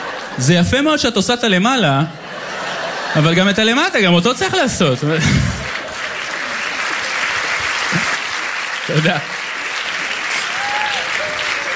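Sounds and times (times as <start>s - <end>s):
speech: 0.4s - 2.2s, 3.1s - 5.6s, 8.9s - 9.4s
laughter: 2.1s - 8.3s
many men clapping: 5.3s - 11.7s.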